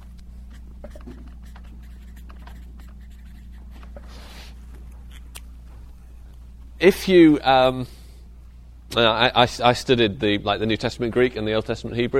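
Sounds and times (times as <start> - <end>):
constant low electrical hum: 0.0 - 12.1
handwriting scratching: 0.5 - 4.1
speech: 6.8 - 8.0, 9.0 - 12.1.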